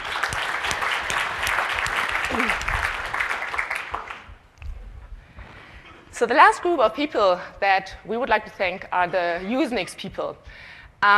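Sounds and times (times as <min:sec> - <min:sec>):
audience applause: 0:00.0 - 0:04.4
speech: 0:02.3 - 0:02.8, 0:06.2 - 0:11.1.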